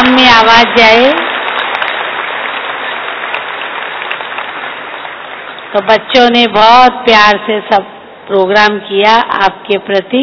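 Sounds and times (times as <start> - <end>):
audience clapping loudly: 0.0 - 5.9
speech: 0.4 - 1.2, 5.8 - 10.2.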